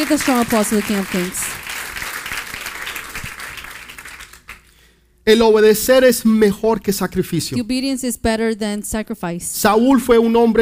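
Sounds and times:
speech: 0:00.0 - 0:01.5, 0:05.3 - 0:10.6
loud applause: 0:00.0 - 0:04.7.

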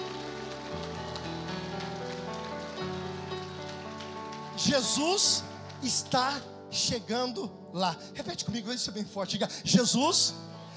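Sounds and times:
audience applauding: 0:00.0 - 0:06.5
speech: 0:04.6 - 0:10.6.

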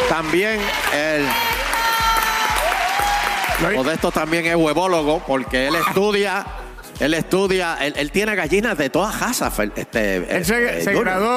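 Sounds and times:
applause: 0:00.0 - 0:05.3
speech: 0:00.2 - 0:01.6, 0:03.6 - 0:11.3.

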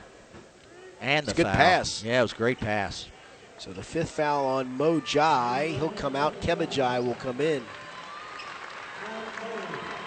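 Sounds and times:
speech: 0:01.0 - 0:07.8
small crowd clapping in a gym: 0:06.1 - 0:10.0.

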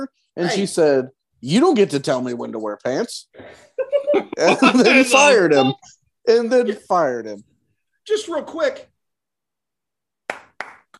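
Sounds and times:
speech: 0:00.0 - 0:08.9
laughter: 0:03.8 - 0:05.7
applause: 0:10.2 - 0:10.9.

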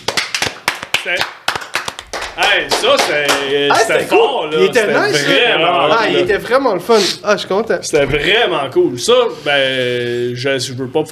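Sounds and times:
applause: 0:00.0 - 0:03.7
speech: 0:01.0 - 0:01.4, 0:02.4 - 0:11.0.

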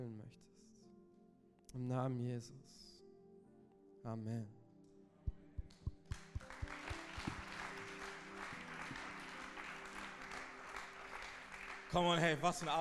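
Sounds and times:
speech: 0:00.0 - 0:00.7, 0:01.7 - 0:02.9, 0:04.0 - 0:04.6, 0:11.9 - 0:12.7
audience applause: 0:05.9 - 0:12.7.

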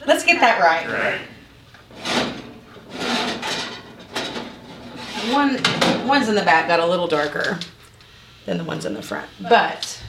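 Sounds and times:
speech: 0:00.0 - 0:02.1, 0:05.2 - 0:07.7, 0:08.4 - 0:10.0
tray of cookies pulled out of the oven, scraping on the rack: 0:00.6 - 0:06.6.

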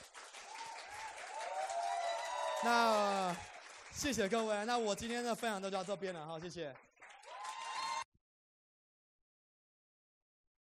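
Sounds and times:
audience applause: 0:00.0 - 0:08.1
speech: 0:02.6 - 0:06.9.

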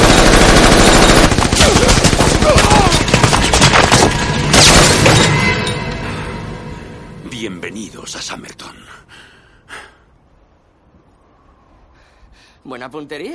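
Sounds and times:
machine gun fire from the back door of a vehicle in a street shootout: 0:00.0 - 0:05.2
speech: 0:12.6 - 0:13.3.

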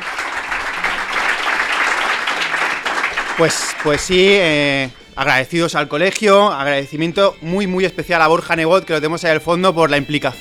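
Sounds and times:
audience applause: 0:00.0 - 0:05.1
speech: 0:03.4 - 0:10.3.

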